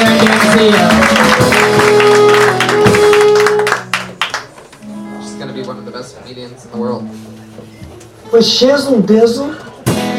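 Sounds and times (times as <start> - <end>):
audience applause: 0.0 - 4.8
speech: 8.4 - 9.6.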